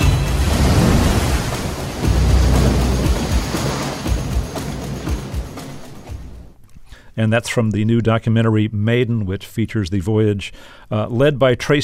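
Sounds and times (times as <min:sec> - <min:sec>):
sailing boat hull slamming through rough waves: 0:00.0 - 0:06.4
roar of wind and spray: 0:00.2 - 0:05.2
speech: 0:07.2 - 0:11.8.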